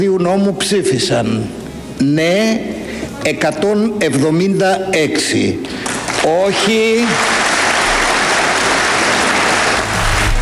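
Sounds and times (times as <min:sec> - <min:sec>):
speech: 0:00.0 - 0:07.4
applause in the Greek parliament after a bill vote: 0:05.8 - 0:10.4.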